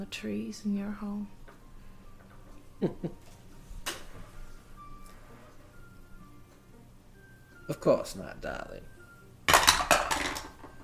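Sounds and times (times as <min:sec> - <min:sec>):
speech: 0:00.0 - 0:01.4, 0:02.8 - 0:03.4, 0:07.7 - 0:08.9
laughter: 0:02.8 - 0:03.2
dice rolling in a dice tray: 0:09.5 - 0:10.8.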